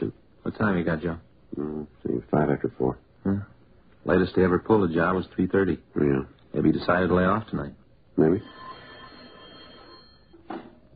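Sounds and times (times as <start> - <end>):
speech: 0.1 - 8.7
telephone bell ringing at the Argus Hotel: 8.3 - 10.5.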